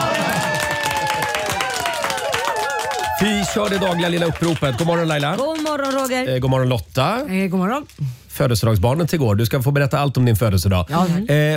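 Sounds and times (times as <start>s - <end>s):
small applause: 0.0s - 6.2s
speech: 3.2s - 11.5s.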